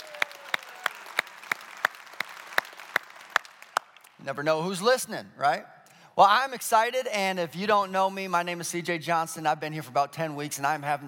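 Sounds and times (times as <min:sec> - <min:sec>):
audience cheering and applauding: 0:00.0 - 0:04.2
speech: 0:04.2 - 0:11.0.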